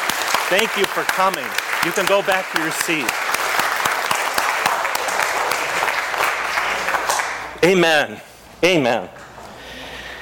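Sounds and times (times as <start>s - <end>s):
audience applause: 0.0s - 7.5s
speech: 0.5s - 3.3s, 7.6s - 9.2s.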